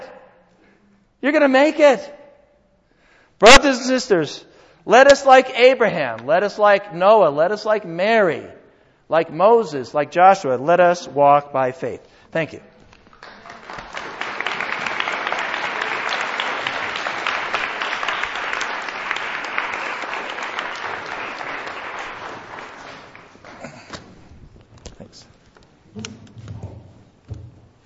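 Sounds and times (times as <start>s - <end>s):
speech: 1.2s - 2.2s, 3.4s - 12.7s
crowd applause: 13.2s - 24.0s.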